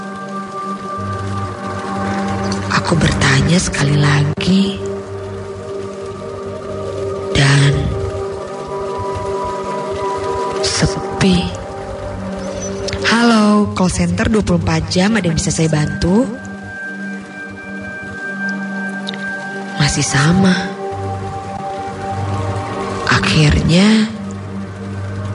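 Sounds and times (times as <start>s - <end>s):
water running: 0.0s - 25.3s
speech: 2.8s - 4.9s, 13.8s - 16.4s, 19.9s - 20.7s, 23.4s - 24.1s.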